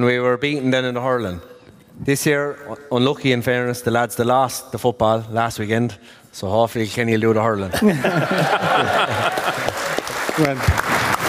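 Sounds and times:
speech: 0.0 - 9.3, 10.4 - 10.8
laughter: 7.7 - 10.7
person clapping for themselves: 9.0 - 11.2.

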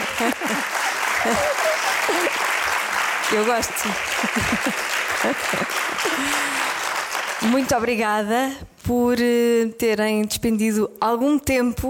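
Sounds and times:
people talking and laughing: 0.0 - 2.5, 3.9 - 6.6
audience applause: 0.0 - 7.9
speech: 0.2 - 2.5, 3.3 - 6.8, 7.4 - 11.8.

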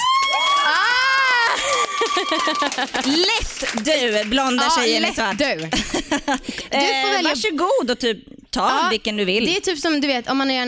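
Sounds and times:
high-pitched voices screaming and whooping: 0.0 - 2.8
crowd cheering: 0.0 - 5.2
laughter: 1.4 - 3.4, 5.6 - 6.6
speech: 2.2 - 10.6.

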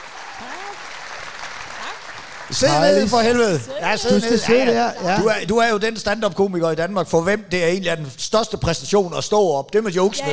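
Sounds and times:
audience applause for a comedian at a Danish stand-up show: 0.0 - 5.4
speech: 0.4 - 1.0, 2.5 - 10.3.

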